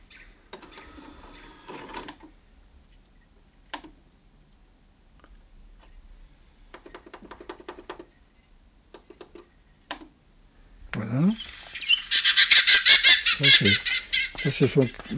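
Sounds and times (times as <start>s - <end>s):
Western Orphean Warbler calls: 0.0s - 1.6s, 11.2s - 15.1s
speech: 14.6s - 15.1s.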